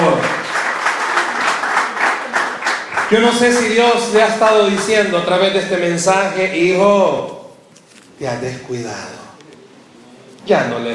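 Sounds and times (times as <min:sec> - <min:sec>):
audience applause: 0:00.0 - 0:04.9
speech: 0:03.1 - 0:07.4, 0:08.2 - 0:09.2, 0:10.4 - 0:10.9.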